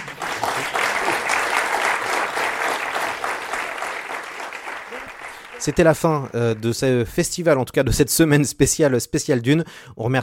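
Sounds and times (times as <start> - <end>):
sustained crowd applause: 0.0 - 7.0
speech: 5.6 - 10.2.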